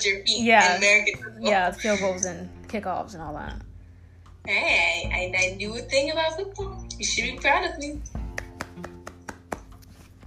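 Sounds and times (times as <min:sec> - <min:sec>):
speech: 0:00.0 - 0:03.7, 0:04.4 - 0:08.2
hands clapping: 0:08.1 - 0:10.2.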